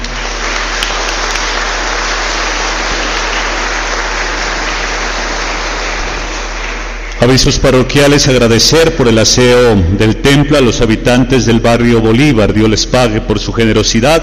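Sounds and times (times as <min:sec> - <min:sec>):
audience applauding: 0:00.0 - 0:07.5
speech: 0:07.2 - 0:14.2.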